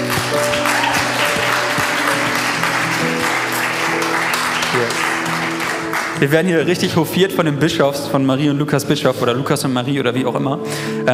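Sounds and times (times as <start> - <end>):
audience applauding: 0.0 - 6.7
speech: 6.2 - 11.1.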